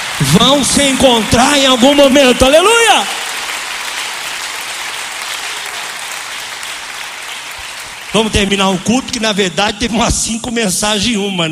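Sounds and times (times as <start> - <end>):
audience applause: 0.0 - 9.4
speech: 0.2 - 3.2, 8.1 - 11.4.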